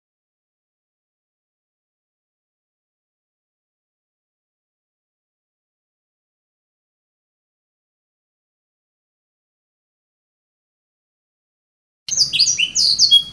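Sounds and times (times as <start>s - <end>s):
canary singing: 12.1s - 13.3s.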